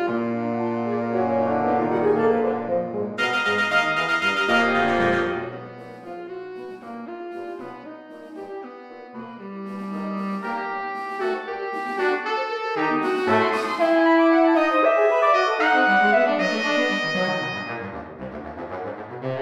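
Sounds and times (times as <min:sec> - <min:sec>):
saxophone band playing: 0:00.0 - 0:18.3.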